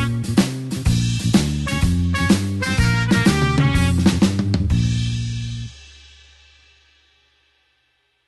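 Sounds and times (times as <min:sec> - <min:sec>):
blues horns shuffle in B flat: 0:00.0 - 0:05.8.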